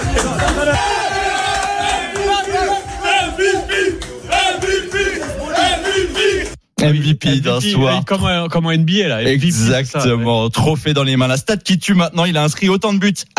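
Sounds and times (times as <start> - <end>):
cheering: 0.0 - 6.6
football players chanting and shouting in a Paris club's dressing room: 0.0 - 8.1
speech: 6.8 - 13.3.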